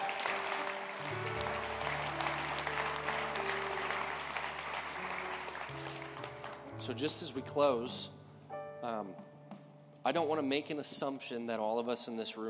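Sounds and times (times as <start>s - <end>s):
audience clapping: 0.0s - 6.9s
low sustained keyboard chords: 0.0s - 10.7s
speech: 6.9s - 8.2s, 8.8s - 9.3s, 10.0s - 12.4s.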